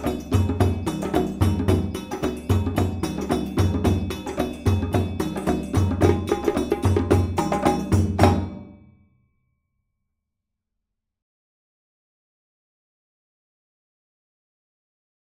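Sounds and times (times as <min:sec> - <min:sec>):
djembe drumming: 0:00.0 - 0:08.8.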